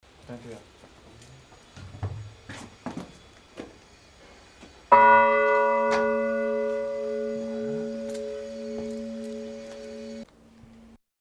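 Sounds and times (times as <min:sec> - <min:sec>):
bell ringing: 0:04.9 - 0:10.2.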